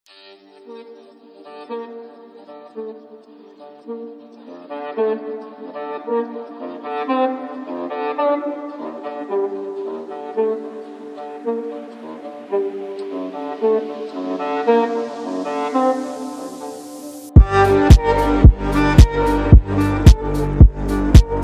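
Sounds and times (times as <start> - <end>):
saxophone: 0.1 - 21.4.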